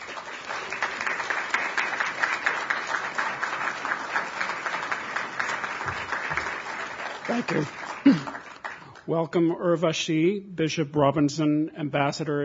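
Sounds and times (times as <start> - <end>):
audience applause at a library event: 0.0 - 9.1
speech: 7.3 - 8.4, 9.1 - 12.4.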